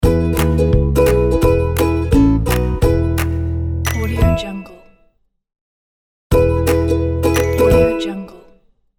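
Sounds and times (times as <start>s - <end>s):
upbeat happy ukulele logo jingle: 0.0s - 4.7s, 6.3s - 8.1s.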